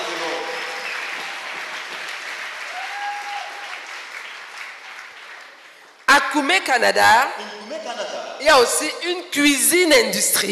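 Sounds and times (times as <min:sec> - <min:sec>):
congregation applauding to acclaim the Lord at a worship gathering: 0:00.0 - 0:06.1
speech: 0:06.2 - 0:10.5.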